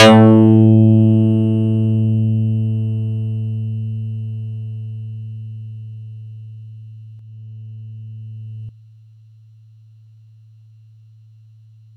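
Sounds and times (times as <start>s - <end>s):
Yamaha YX81Z electric bass note A3: 0.0s - 8.7s.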